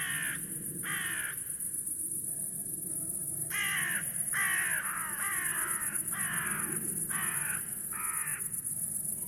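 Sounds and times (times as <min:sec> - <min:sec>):
carrion crow Corvus corone giving rough caws: 0:00.0 - 0:01.4, 0:03.5 - 0:08.5.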